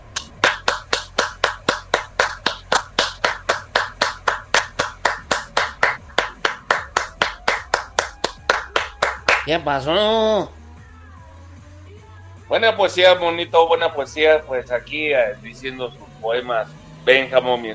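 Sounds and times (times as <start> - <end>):
hands clapping: 0.0 - 9.5
speech: 9.5 - 10.6, 12.5 - 17.7.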